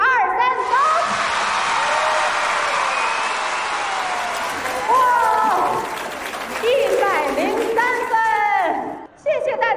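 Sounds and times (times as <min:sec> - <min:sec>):
cheering shouts: 0:00.4 - 0:07.2
crowd roar: 0:00.6 - 0:07.0
dense applause: 0:01.1 - 0:09.1.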